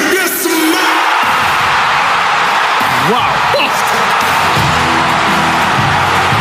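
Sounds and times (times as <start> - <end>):
stadium crowd erupting in cheers: 0.0 - 6.3.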